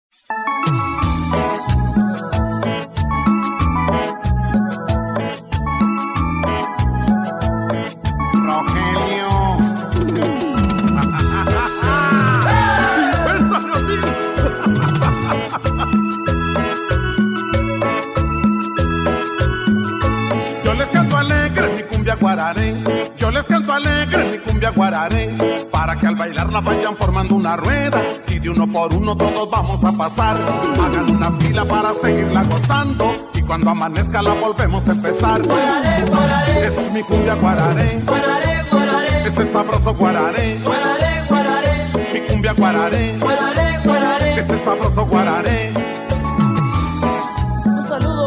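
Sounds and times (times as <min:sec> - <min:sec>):
cumbia music: 0:00.2 - 0:48.2
laughter: 0:10.1 - 0:16.3.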